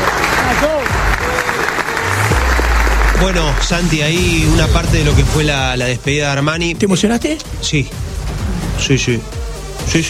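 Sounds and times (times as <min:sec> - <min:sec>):
crowd applause: 0:00.0 - 0:05.0
people cheering: 0:00.0 - 0:05.2
speech: 0:03.2 - 0:08.1, 0:08.8 - 0:10.0.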